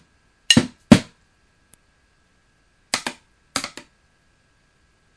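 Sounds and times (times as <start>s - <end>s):
drum practice: 0.5s - 1.1s.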